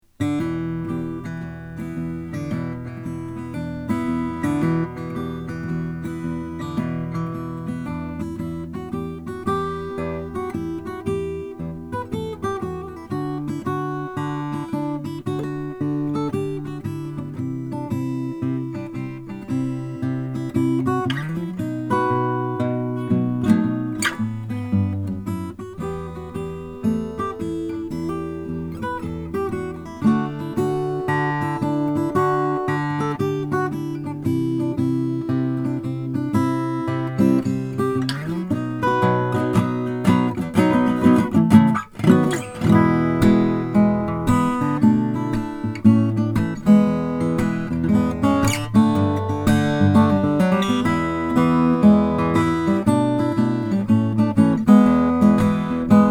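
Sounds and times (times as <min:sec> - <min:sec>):
Madagascar rosewood guitar: 0:00.0 - 0:56.0.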